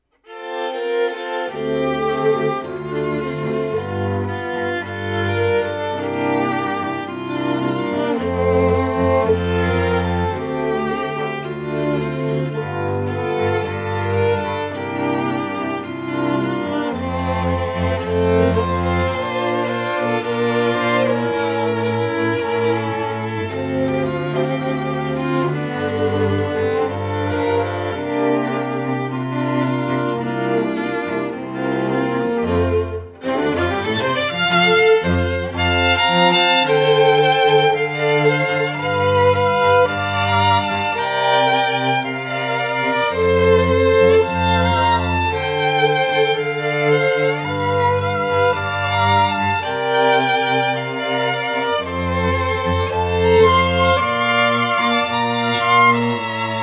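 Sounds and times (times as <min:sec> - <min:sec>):
strings: 0:00.0 - 0:56.6.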